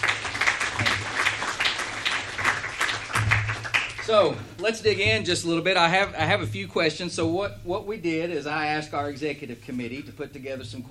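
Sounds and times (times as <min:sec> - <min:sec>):
crowd applauding: 0:00.0 - 0:04.4
speech: 0:04.1 - 0:10.9.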